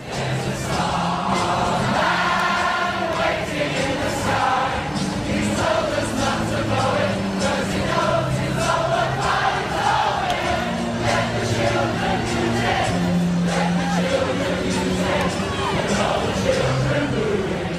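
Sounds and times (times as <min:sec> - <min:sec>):
crowd in Brixton singing in unison: 0:00.0 - 0:17.7
dense murmur of voices: 0:00.0 - 0:17.7.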